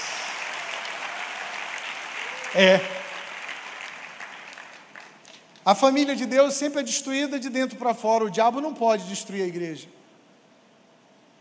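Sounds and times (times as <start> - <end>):
audience applauding: 0.0 - 6.0
speech: 2.5 - 3.0, 5.6 - 10.0.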